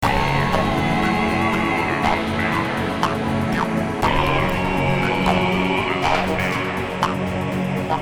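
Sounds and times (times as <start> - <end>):
acid music mix: 0.0 - 7.9.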